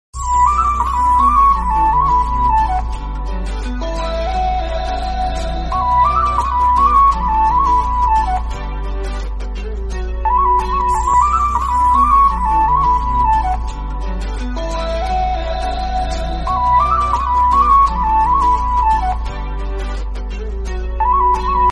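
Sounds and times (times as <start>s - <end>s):
instrumental ringtone: 0.2s - 21.7s.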